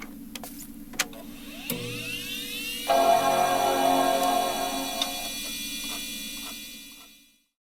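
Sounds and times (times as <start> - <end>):
iMac boot sound: 2.9 - 5.7.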